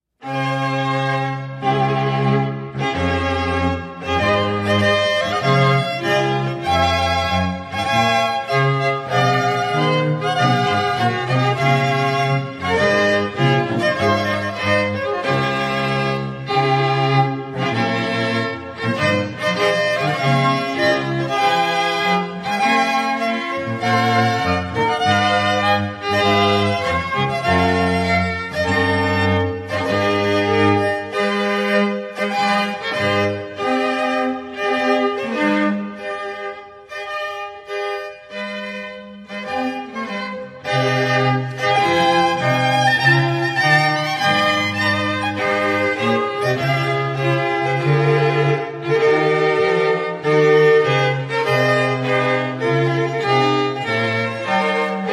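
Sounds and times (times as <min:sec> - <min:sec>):
baroque orchestral overture: 0:00.1 - 0:55.1.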